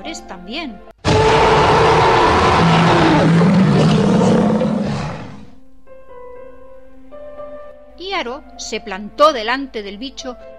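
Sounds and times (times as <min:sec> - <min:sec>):
speech: 0:00.0 - 0:03.5, 0:08.2 - 0:10.5
T-Rex dinosaur roaring: 0:01.0 - 0:05.6.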